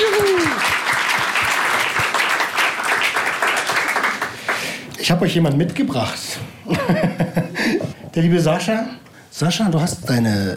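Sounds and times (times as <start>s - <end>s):
person whooping: 0.0s - 0.8s
crowd applauding: 0.0s - 4.8s
speech: 5.2s - 10.5s
laughter: 6.7s - 8.1s.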